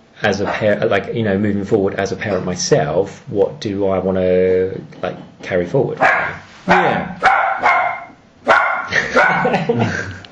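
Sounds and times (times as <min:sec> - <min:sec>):
speech: 0:00.2 - 0:07.7, 0:09.4 - 0:10.2
puppy barking: 0:06.0 - 0:09.6
laughter: 0:08.9 - 0:10.2.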